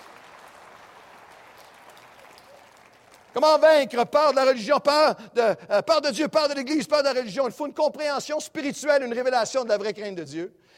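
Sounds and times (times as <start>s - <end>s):
audience applause: 0.0s - 3.6s
speech: 3.4s - 10.7s.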